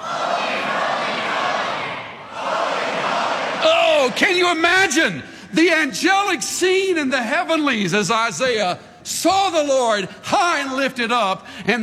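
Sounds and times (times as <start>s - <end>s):
crowd screaming loudly: 0.0s - 5.0s
speech: 4.1s - 11.8s.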